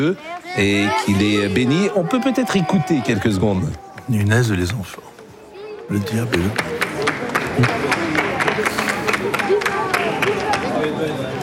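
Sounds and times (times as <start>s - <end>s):
speech: 0.0s - 5.1s, 5.9s - 6.8s, 7.6s - 8.7s
murmur of many voices: 0.0s - 11.4s
crowd applauding: 5.9s - 11.4s.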